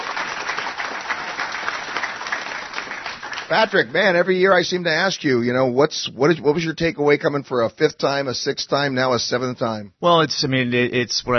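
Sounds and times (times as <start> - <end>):
audience applause: 0.0 - 4.2
speech: 3.5 - 11.3.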